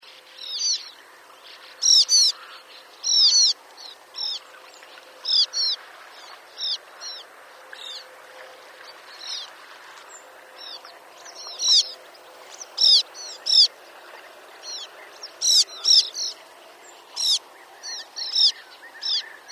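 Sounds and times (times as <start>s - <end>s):
sand martin calls: 0.4s - 4.5s, 5.2s - 8.0s, 10.6s - 13.8s, 14.6s - 19.5s.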